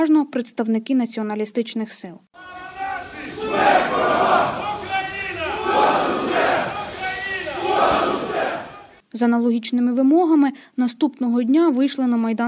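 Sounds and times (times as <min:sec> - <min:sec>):
speech: 0:00.0 - 0:02.6, 0:03.5 - 0:04.6, 0:09.1 - 0:12.4
protest crowd chanting: 0:02.4 - 0:09.0.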